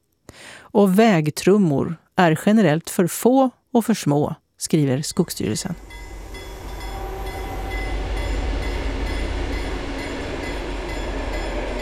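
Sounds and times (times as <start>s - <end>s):
speech: 0.7s - 6.1s
train rushing past: 5.2s - 11.7s.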